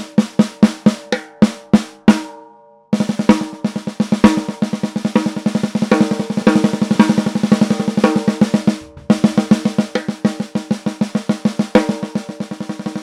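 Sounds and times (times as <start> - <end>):
maple 14x6.5 snare drum: 0.0 - 2.3, 3.0 - 13.0.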